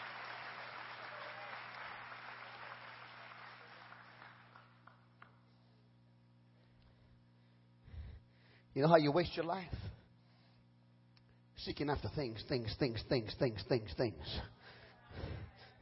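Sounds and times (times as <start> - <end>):
audience clapping hands: 0.0 - 5.5
steady low hum: 3.5 - 15.8
speech: 8.8 - 10.0, 11.6 - 14.6.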